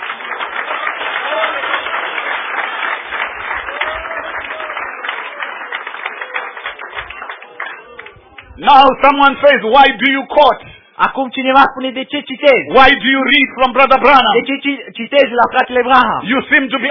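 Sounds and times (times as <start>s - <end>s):
church congregation clapping in praise to God: 0.0s - 8.8s
speech: 8.6s - 16.8s.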